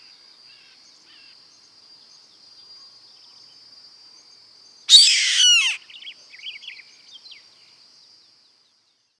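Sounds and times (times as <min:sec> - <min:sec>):
bird harsh rasping screech: 0:04.9 - 0:05.8
faint soft chirps: 0:04.9 - 0:05.8.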